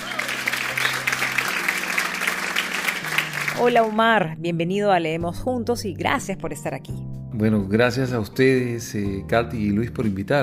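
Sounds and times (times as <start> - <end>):
audience applause welcoming a guest onto a show: 0.0 - 4.0
speech: 3.6 - 10.4.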